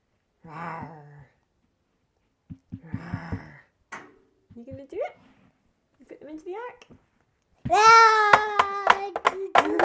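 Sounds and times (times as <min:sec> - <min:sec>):
speech: 0:00.4 - 0:01.1, 0:06.3 - 0:07.0, 0:07.7 - 0:09.2
young child imitating a lion's roar: 0:07.7 - 0:09.1.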